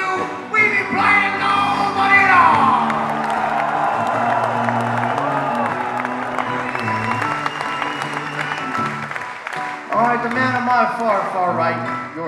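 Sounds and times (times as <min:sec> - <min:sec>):
sustained band chords: 0:00.8 - 0:09.2
audience applause and cheering at concert: 0:01.5 - 0:11.5.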